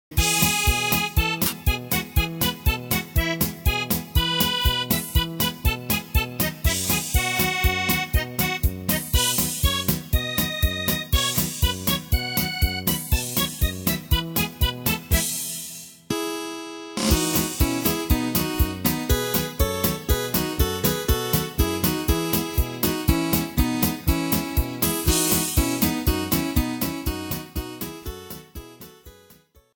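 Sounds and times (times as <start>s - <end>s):
polka music: 0.1s - 29.7s.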